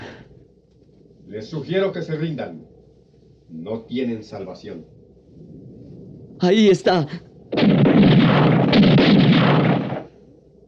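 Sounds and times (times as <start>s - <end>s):
faint low rumble: 0.0s - 10.6s
speech: 1.3s - 2.7s, 3.5s - 5.5s, 6.4s - 9.2s
rapid gunfire: 7.5s - 10.2s.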